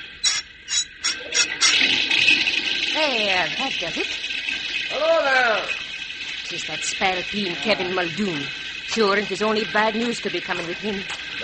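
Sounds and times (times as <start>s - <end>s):
metal spigot being cranked on a boiler: 0.0s - 1.9s, 6.5s - 10.8s
water rushing from spigot into boiler: 1.0s - 11.4s
speech: 3.0s - 4.2s, 4.9s - 5.8s, 6.5s - 11.4s.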